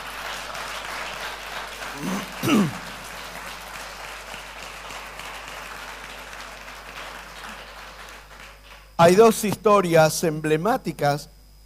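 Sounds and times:
crowd applauding: 0.0s - 9.0s
speech: 2.0s - 2.8s, 9.0s - 11.4s.

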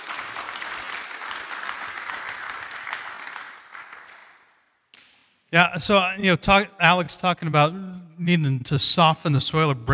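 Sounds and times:
audience applause: 0.0s - 4.5s
speech: 5.5s - 9.9s.

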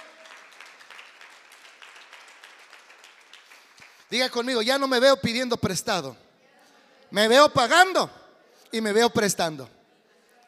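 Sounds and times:
audience applause: 0.0s - 4.1s
speech: 4.1s - 6.2s, 7.1s - 9.8s.

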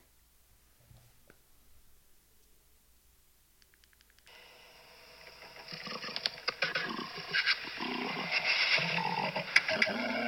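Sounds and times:
giraffe vocalizing in harsh rasping bursts: 6.6s - 10.2s.

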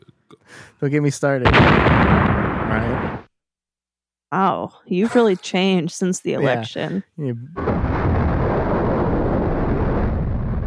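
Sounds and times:
speech: 0.8s - 3.3s, 4.3s - 7.8s
electric rocket roar: 1.5s - 3.3s, 7.6s - 10.6s.

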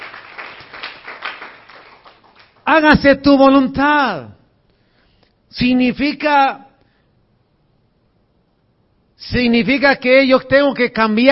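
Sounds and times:
audience applauding: 0.0s - 2.6s
speech: 2.7s - 4.4s, 5.5s - 6.7s, 9.2s - 11.3s.

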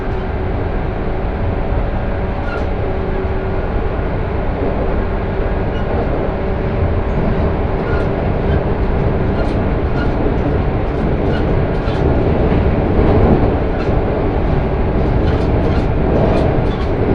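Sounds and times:
train carriage on the Sanyo Main Line between Kurashiki and Fukuyama: 0.0s - 17.1s
clicks and rattles: 7.8s - 17.1s.

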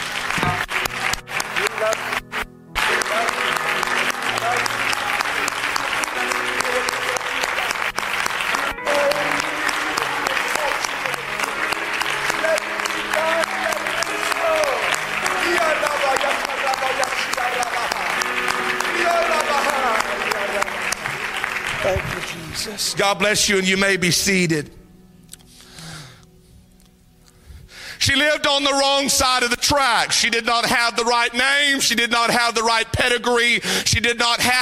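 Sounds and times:
audience clapping hands loudly: 0.0s - 23.3s
speech: 23.0s - 24.8s, 28.6s - 34.6s.

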